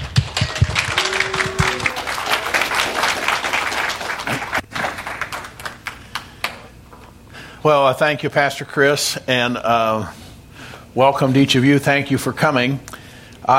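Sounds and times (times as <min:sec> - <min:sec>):
church congregation applauding a guest speaker: 0:00.0 - 0:06.7
speech: 0:07.6 - 0:10.2, 0:10.9 - 0:13.5.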